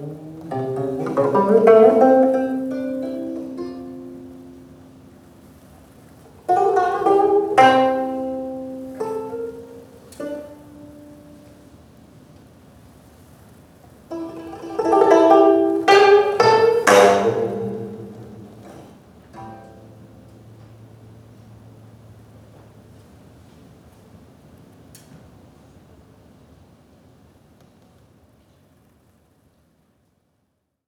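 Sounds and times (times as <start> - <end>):
gayageum playing: 0.0 - 5.6, 6.4 - 11.8, 14.1 - 23.0.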